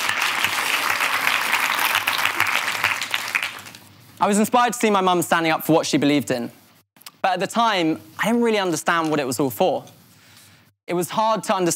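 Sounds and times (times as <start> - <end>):
audience applause: 0.0 - 3.8
speech: 4.2 - 6.6, 7.2 - 10.0, 10.9 - 11.7.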